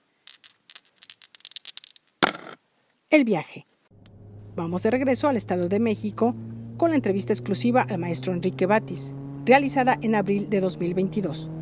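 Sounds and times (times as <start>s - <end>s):
dice being rolled: 0.0s - 2.6s
speech: 3.1s - 3.7s, 4.6s - 11.6s.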